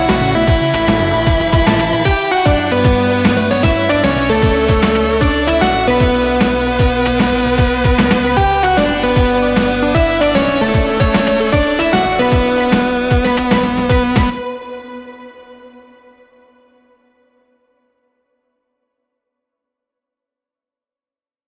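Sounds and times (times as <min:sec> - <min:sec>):
swinging melody: 0:00.0 - 0:15.1.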